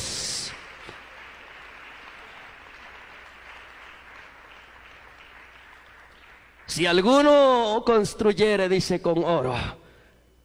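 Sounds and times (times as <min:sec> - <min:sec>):
audience applause: 0:00.0 - 0:07.1
speech: 0:06.7 - 0:09.8.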